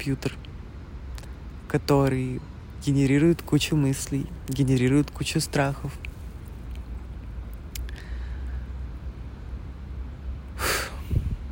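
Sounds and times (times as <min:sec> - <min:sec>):
speech: 0:00.0 - 0:00.5, 0:01.7 - 0:06.1
steady hiss: 0:00.0 - 0:11.5
deep exhale during a breathing meditation: 0:07.9 - 0:08.8, 0:10.6 - 0:11.5.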